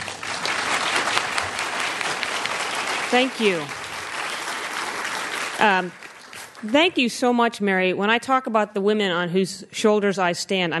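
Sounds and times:
audience applause welcoming a speaker to a meeting: 0.0s - 6.9s
speech: 3.1s - 3.8s, 5.6s - 10.7s.

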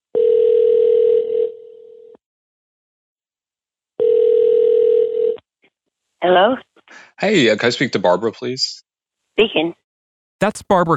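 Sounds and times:
telephone tone of an outgoing call: 0.1s - 2.2s, 4.0s - 5.4s
speech: 6.2s - 8.8s, 9.4s - 9.8s, 10.4s - 10.9s.

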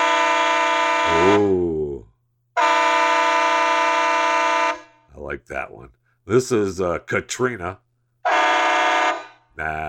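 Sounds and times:
loud multi-tone air horn blast: 0.0s - 1.6s, 2.6s - 5.0s, 8.2s - 9.5s
speech: 1.0s - 1.7s, 5.5s - 7.8s, 9.6s - 9.8s.

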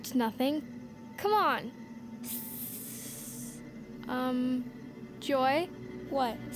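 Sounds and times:
speech: 0.0s - 2.5s, 4.1s - 6.5s
buzzing tone: 0.0s - 6.5s
low hum: 0.0s - 6.5s
snake hissing: 2.2s - 3.6s.

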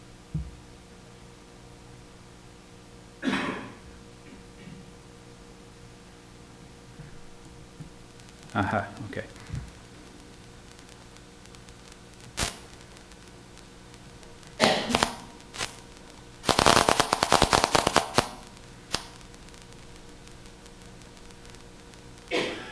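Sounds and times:
faint steady hiss: 0.0s - 22.7s
crackling clicks of a single brain cell firing: 7.0s - 22.4s
speech: 8.6s - 9.7s.

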